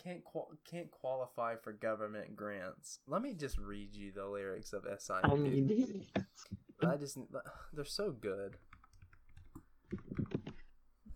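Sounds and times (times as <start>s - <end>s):
speech: 0.0s - 8.7s, 9.9s - 10.4s
typing on a keyboard: 8.5s - 10.7s.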